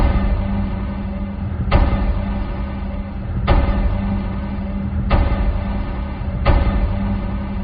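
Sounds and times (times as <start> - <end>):
steady low rumbling hiss: 0.0 - 7.6
pulsar radio signals rendered as sharp knocks: 1.6 - 2.6, 3.4 - 7.3.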